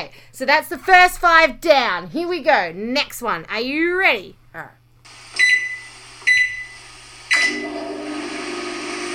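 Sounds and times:
speech: 0.0s - 4.8s
washing machine starting up: 5.4s - 9.1s.

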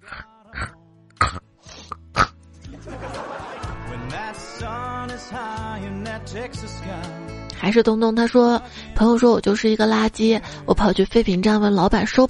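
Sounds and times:
person imitating a pig's snorting grunts, squeals and oinks: 0.0s - 2.4s
laughter: 2.6s - 5.1s
speech: 5.8s - 12.2s.

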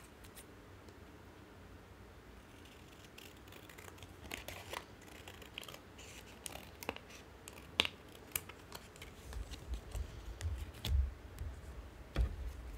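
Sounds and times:
faint low hum: 0.0s - 12.7s
playing cards shuffled and cut: 2.9s - 11.0s
dull thumps: 10.4s - 12.7s.

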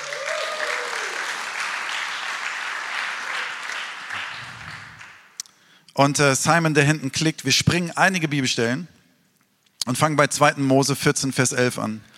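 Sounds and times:
audience applause: 0.0s - 5.3s
speech: 6.0s - 9.0s, 9.8s - 12.1s.

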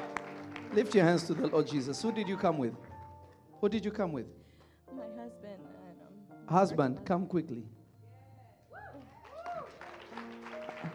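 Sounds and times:
audience clapping: 0.0s - 3.5s, 8.9s - 10.9s
speech: 0.7s - 2.9s, 3.6s - 4.4s, 6.5s - 7.8s.

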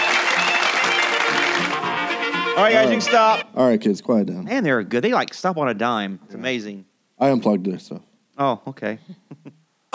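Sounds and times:
audience applause for a band: 0.0s - 2.5s
speech: 2.6s - 9.9s.

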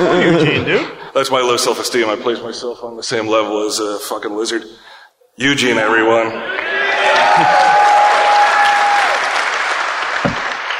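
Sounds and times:
speech: 0.2s - 7.6s
audience applause: 6.4s - 10.7s.

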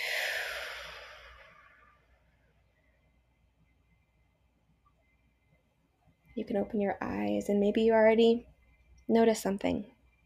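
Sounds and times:
soft exhale closing a guided relaxation exercise: 0.0s - 2.0s
speech: 6.4s - 8.5s, 9.1s - 10.0s.

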